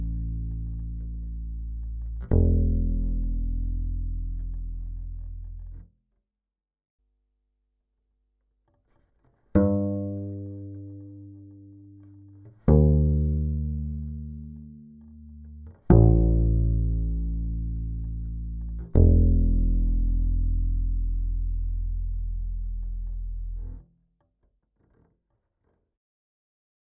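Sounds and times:
Phil Jones Kontrabass amplifier: 0:00.0 - 0:05.9, 0:09.5 - 0:23.8.

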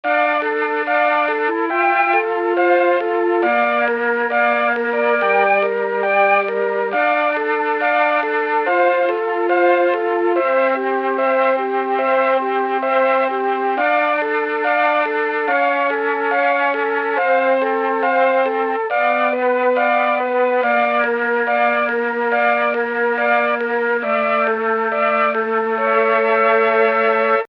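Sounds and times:
Mellotron flute: 0:00.0 - 0:27.4.

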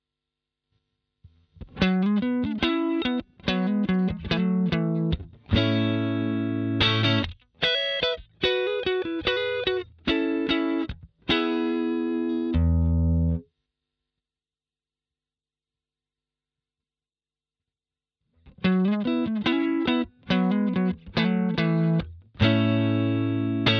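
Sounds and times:
blues music: 0:01.6 - 0:13.4, 0:18.5 - 0:23.7.

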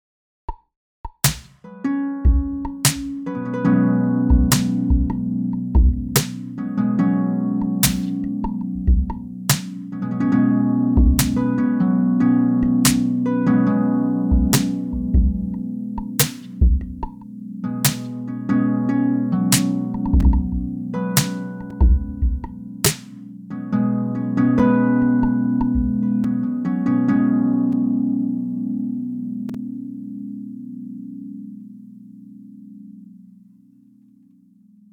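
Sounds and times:
harp: 0:01.7 - 0:32.6.

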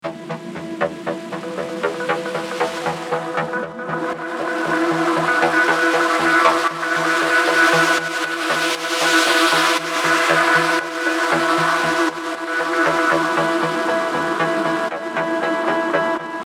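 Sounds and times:
clean drones: 0:00.0 - 0:16.4.

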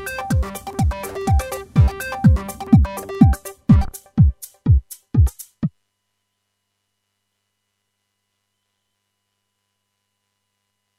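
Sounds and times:
electro club music: 0:00.0 - 0:05.7.

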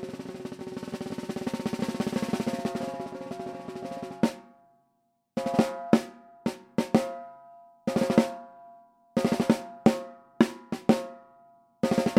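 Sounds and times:
14x8 mahogany snare drum tuned high: 0:00.0 - 0:04.5, 0:05.4 - 0:07.2, 0:07.9 - 0:08.4, 0:09.2 - 0:11.2, 0:11.8 - 0:12.1.

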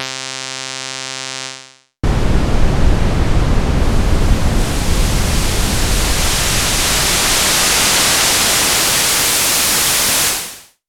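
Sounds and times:
synthesizer oscillators: 0:02.1 - 0:10.7.

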